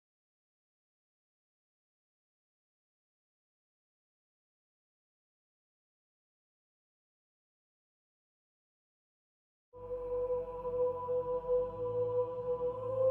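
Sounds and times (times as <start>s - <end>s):
bass ambience: 9.8s - 13.1s.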